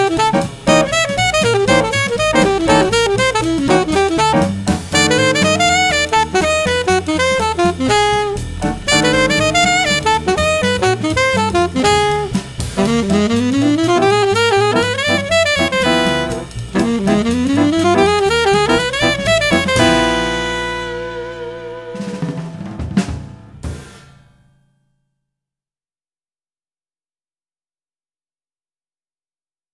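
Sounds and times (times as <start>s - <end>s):
fast hip alto sax licks: 0.0s - 23.1s.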